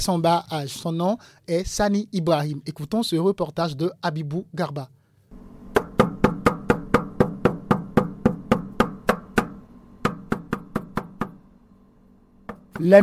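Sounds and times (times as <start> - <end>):
speech: 0.0 - 5.0, 12.8 - 13.0
hammer striking a nail: 5.7 - 11.4, 12.4 - 13.0.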